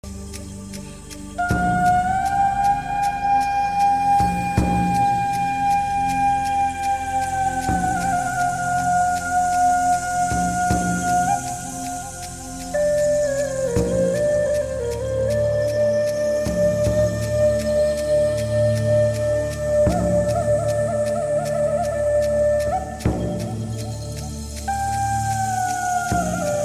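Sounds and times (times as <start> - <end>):
Indian music: 0.0 - 26.6.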